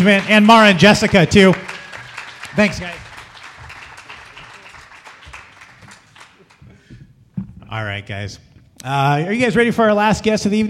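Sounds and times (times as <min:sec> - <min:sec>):
speech: 0:00.0 - 0:01.7, 0:02.6 - 0:03.0, 0:07.7 - 0:10.6
audience applause at a live show: 0:00.0 - 0:06.9.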